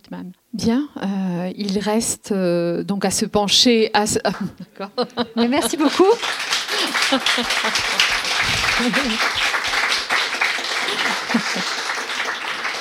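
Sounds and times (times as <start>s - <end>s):
speech: 0.1s - 9.5s
laughter: 4.3s - 12.7s
audience applause: 4.7s - 12.7s.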